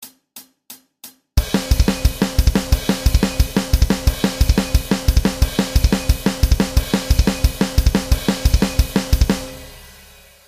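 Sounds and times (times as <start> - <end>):
thrash metal bass: 1.4 - 10.4.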